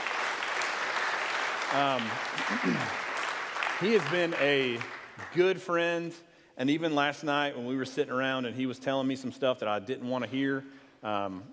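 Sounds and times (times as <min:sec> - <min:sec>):
church audience applause: 0:00.0 - 0:05.5
speech: 0:01.7 - 0:03.0, 0:03.8 - 0:11.5.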